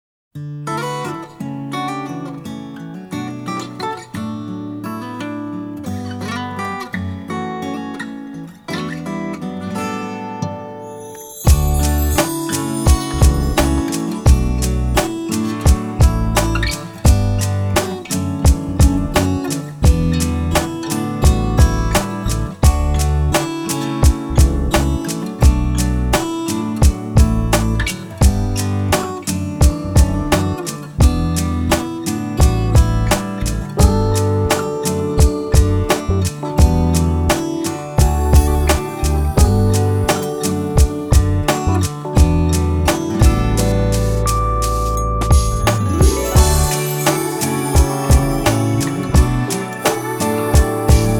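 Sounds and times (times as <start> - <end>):
full off-vocal instrumental version: 10.4 - 51.1.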